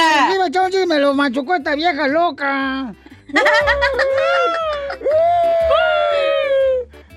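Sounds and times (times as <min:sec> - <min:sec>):
speech: 0:00.5 - 0:06.3
laughter: 0:03.2 - 0:06.6
voice imitating crying: 0:03.4 - 0:06.9.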